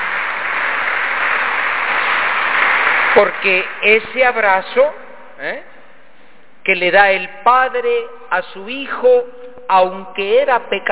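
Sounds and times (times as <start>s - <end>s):
audience applause: 0.0s - 3.8s
speech: 3.2s - 5.7s, 6.6s - 10.9s.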